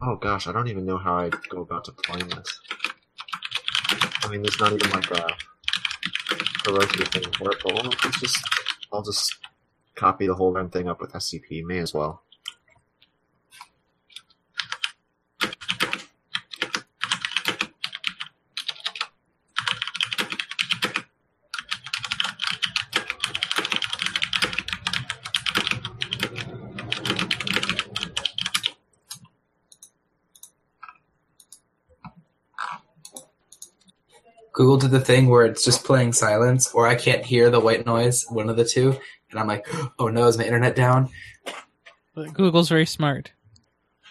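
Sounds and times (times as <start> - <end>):
speech: 0.0 - 2.8, 3.9 - 12.3, 34.8 - 41.4, 42.2 - 43.4
typing and clicking on a computer keyboard: 1.3 - 9.5, 13.6 - 31.6, 33.0 - 33.8.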